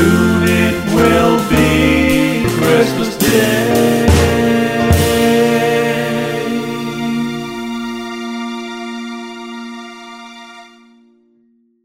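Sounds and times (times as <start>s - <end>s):
vocals: 0.0s - 8.1s.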